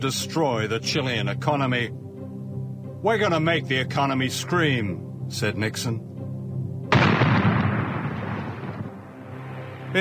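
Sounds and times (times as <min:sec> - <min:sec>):
speech: 0:00.0 - 0:02.1, 0:03.0 - 0:06.1
bombs exploding: 0:06.9 - 0:08.9.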